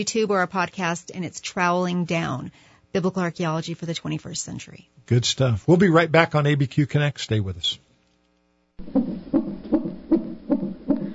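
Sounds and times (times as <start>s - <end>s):
speech: 0.0s - 7.8s, 8.8s - 9.2s
fetal heartbeat inside the womb: 8.8s - 11.1s.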